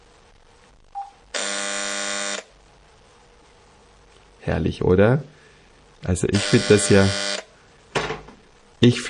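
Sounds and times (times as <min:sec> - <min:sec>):
telephone buzzer ringer sounding: 0:01.4 - 0:02.5, 0:06.4 - 0:07.5
speech: 0:04.5 - 0:05.4, 0:06.0 - 0:07.4, 0:08.8 - 0:09.0.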